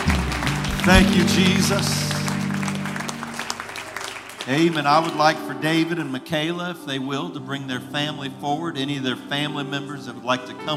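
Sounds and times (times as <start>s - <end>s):
audience hand clapping in praise: 0.0s - 5.5s
speech: 0.8s - 2.0s, 4.5s - 10.7s.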